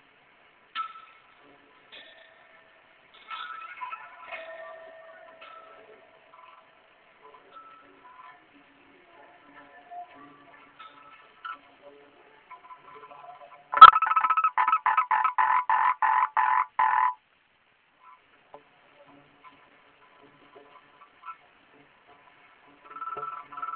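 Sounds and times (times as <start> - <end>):
frog harsh croaks: 13.8 - 17.2, 22.9 - 23.7.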